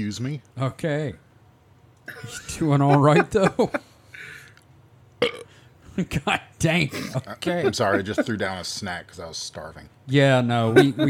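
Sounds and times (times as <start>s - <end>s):
speech: 0.0s - 1.3s, 2.1s - 3.9s, 6.0s - 11.0s
laughter: 2.2s - 3.9s, 6.9s - 8.5s, 10.6s - 11.0s
burp: 5.2s - 5.6s.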